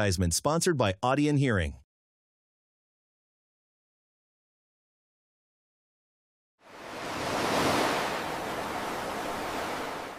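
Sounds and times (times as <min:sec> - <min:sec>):
speech: 0:00.0 - 0:01.8
ocean roaring: 0:06.6 - 0:10.1.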